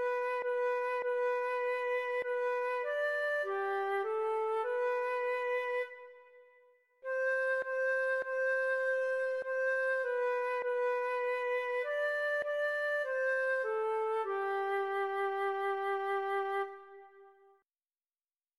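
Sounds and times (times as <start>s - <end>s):
recorder playing a Christmas carol: 0.0s - 6.2s, 7.0s - 17.3s.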